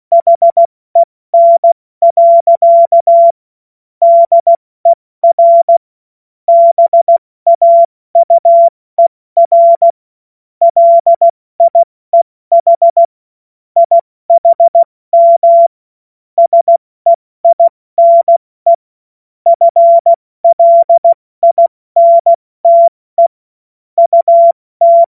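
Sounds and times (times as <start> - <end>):
CW Morse code beeps: 0.1 - 3.4, 4.0 - 4.6, 5.2 - 5.8, 6.5 - 10.0, 10.6 - 11.9, 12.5 - 13.1, 13.8 - 15.7, 16.4 - 18.8, 19.5 - 23.4, 24.0 - 25.0.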